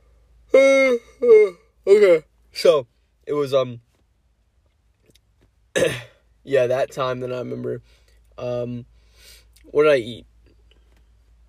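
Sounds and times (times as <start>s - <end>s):
person yawning: 0.5s - 1.7s
speech: 1.2s - 3.9s, 5.8s - 8.9s, 9.6s - 10.3s.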